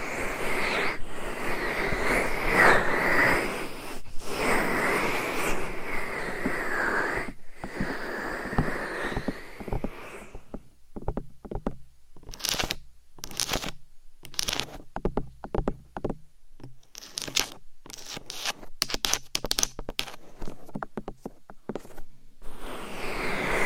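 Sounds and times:
binaural microphone scratching and rubbing: 0:00.3 - 0:16.2, 0:16.9 - 0:23.6
tapping on microphone: 0:07.6 - 0:22.0.

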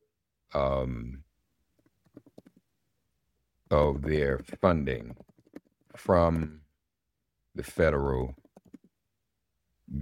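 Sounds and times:
speech: 0:00.5 - 0:01.2, 0:03.7 - 0:05.3, 0:06.0 - 0:06.6, 0:07.6 - 0:08.4, 0:09.9 - 0:10.0
typing on a computer keyboard: 0:02.0 - 0:02.6, 0:04.4 - 0:06.5, 0:08.3 - 0:08.9.

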